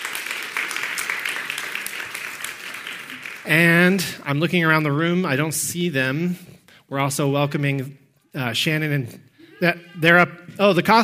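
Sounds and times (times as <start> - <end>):
church congregation applauding to welcome new members: 0.0 - 4.4
speech: 3.4 - 11.0.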